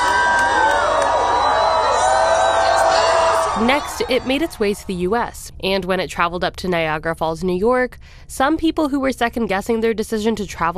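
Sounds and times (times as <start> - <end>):
high-pitched yells: 0.0 - 4.8
spectators in Mazatlan, Mexico cheering the total solar eclipse: 0.0 - 5.0
speech: 3.6 - 10.7.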